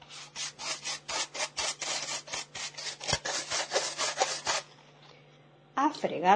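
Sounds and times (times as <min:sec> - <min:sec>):
broom sweeping a house floor: 0:00.0 - 0:04.7.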